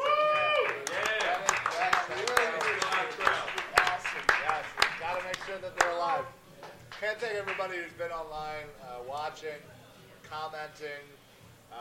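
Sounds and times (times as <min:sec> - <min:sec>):
round of applause: 0:00.0 - 0:07.7
speech: 0:07.0 - 0:11.7.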